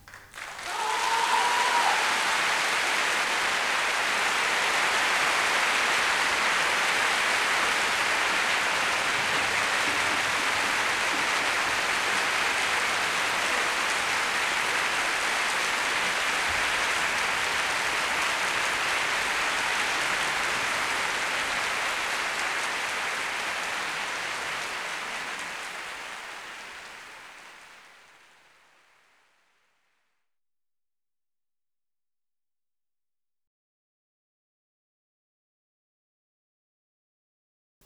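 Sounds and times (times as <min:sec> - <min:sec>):
applause: 0:00.0 - 0:28.8.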